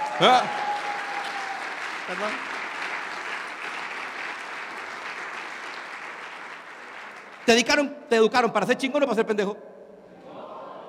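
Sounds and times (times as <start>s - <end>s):
live audience applause: 0.0s - 7.9s
speech: 0.2s - 0.6s, 2.1s - 2.6s, 7.5s - 9.7s.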